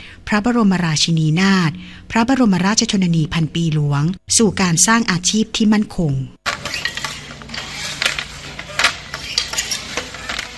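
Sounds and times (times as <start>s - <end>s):
speech: 0.3s - 6.4s
traditional Thai handloom weaving cloth in Sai Buri, Pattani: 6.5s - 10.5s.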